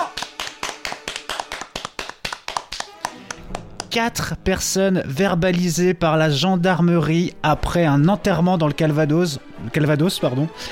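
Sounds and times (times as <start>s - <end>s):
applause: 0.0s - 4.0s
speech: 3.9s - 10.6s.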